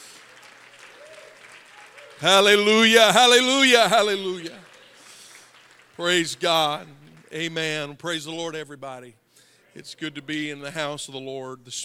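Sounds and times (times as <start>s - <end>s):
audience clapping: 0.0s - 8.0s
speech: 2.2s - 4.7s, 6.0s - 9.2s, 9.8s - 11.8s.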